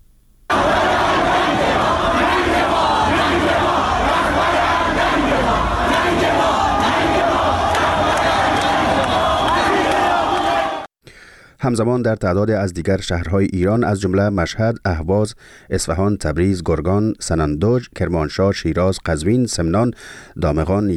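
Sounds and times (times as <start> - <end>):
protest crowd chanting slogans: 0.5 - 10.9
speech: 11.6 - 20.9.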